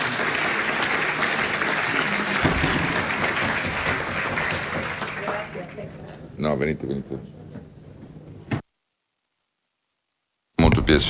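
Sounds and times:
audience applause: 0.0 - 6.5
speech: 6.4 - 7.4, 10.9 - 11.0.

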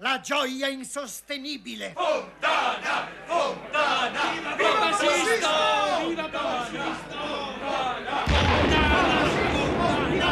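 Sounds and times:
speech: 0.2 - 10.2
blank cannon charges exploding at Castel Sant'Angelo: 8.3 - 10.2.

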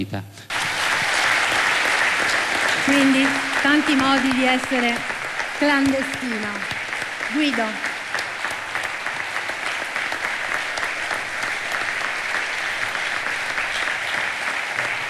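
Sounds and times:
speech: 0.0 - 0.5, 2.8 - 7.9
long applause: 0.5 - 15.0.

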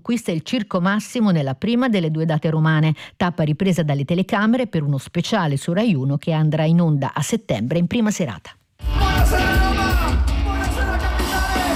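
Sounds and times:
speech: 0.0 - 9.5
concert crowd cheering: 8.8 - 11.7.

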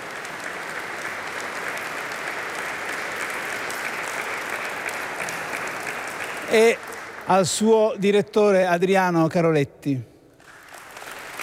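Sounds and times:
audience applause: 0.0 - 8.1, 10.4 - 11.4
speech: 6.5 - 10.1.

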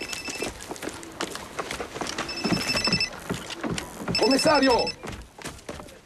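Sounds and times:
telephone ringing in an Italian police drama: 0.0 - 0.5, 2.3 - 3.2, 4.1 - 5.0
speech: 4.3 - 5.0.

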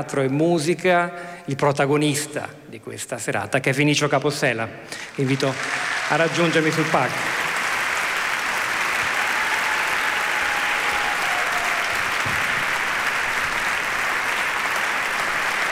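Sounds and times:
speech: 0.0 - 7.4
audience applause in concert hall: 5.0 - 15.7.

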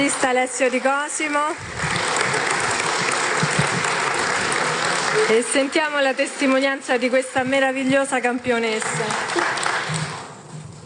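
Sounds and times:
audience applause: 0.0 - 7.0, 8.7 - 10.4
speech: 0.1 - 2.4, 5.2 - 10.0.

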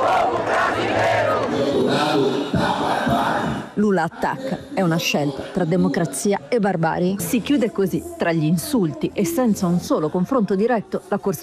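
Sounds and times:
large crowd roaring and shouting at Lula's street march in São Paulo: 0.0 - 3.8
speech: 4.0 - 11.4.

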